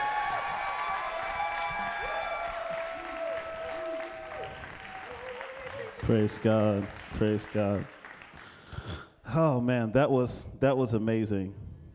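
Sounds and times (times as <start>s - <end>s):
audience applause: 0.0s - 8.7s
speech: 6.1s - 8.0s, 9.3s - 11.6s.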